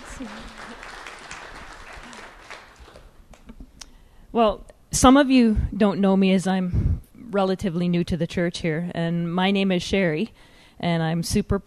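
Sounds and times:
audience applause: 0:00.0 - 0:03.4
speech: 0:00.2 - 0:00.9, 0:04.4 - 0:11.6.

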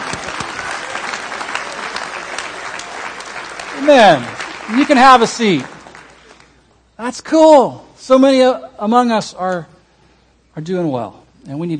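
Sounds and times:
audience applauding: 0:00.0 - 0:06.6
speech: 0:03.8 - 0:05.7, 0:07.0 - 0:09.7, 0:10.6 - 0:11.7.

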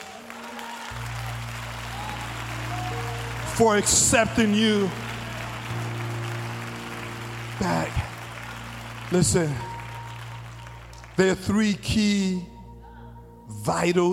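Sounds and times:
audience applause: 0:00.0 - 0:11.5
speech: 0:03.6 - 0:05.0, 0:07.6 - 0:07.9, 0:09.1 - 0:09.7, 0:11.2 - 0:12.5, 0:13.5 - 0:14.1.

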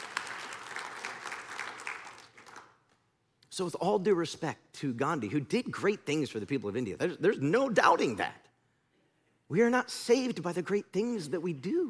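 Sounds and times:
audience clapping: 0:00.0 - 0:03.0
speech: 0:03.6 - 0:08.4, 0:09.5 - 0:11.8.

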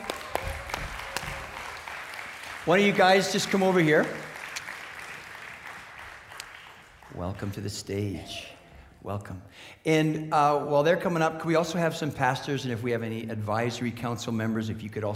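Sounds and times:
audience clapping: 0:00.0 - 0:08.5
speech: 0:02.6 - 0:04.3, 0:07.3 - 0:15.1.

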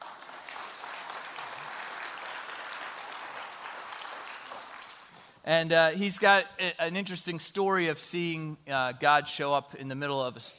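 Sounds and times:
audience applause welcoming speaker: 0:00.0 - 0:05.3
speech: 0:05.4 - 0:10.5.

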